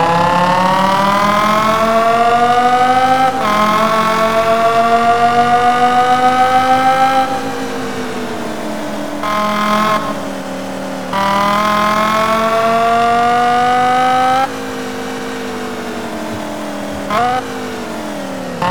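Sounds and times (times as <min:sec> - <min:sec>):
BMW M5 E60 car engine: 0:00.0 - 0:18.6.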